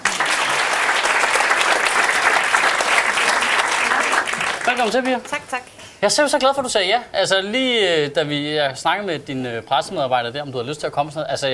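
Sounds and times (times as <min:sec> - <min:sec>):
audience applause at a stand-up comedy show: 0:00.0 - 0:05.4
speech: 0:04.7 - 0:11.5.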